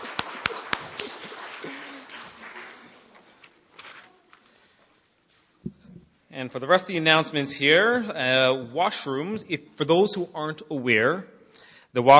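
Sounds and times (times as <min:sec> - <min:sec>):
audience applause for the tech team: 0:00.0 - 0:03.5
speech: 0:06.4 - 0:12.1.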